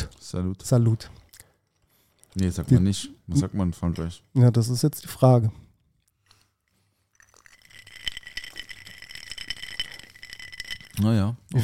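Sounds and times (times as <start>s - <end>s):
speech: 0.3s - 1.2s, 2.4s - 5.6s, 11.0s - 11.6s
ice cubes rattling and clinking: 7.1s - 11.1s.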